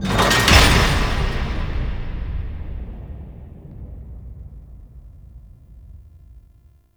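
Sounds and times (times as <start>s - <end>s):
machinery activating: 0.0s - 6.6s.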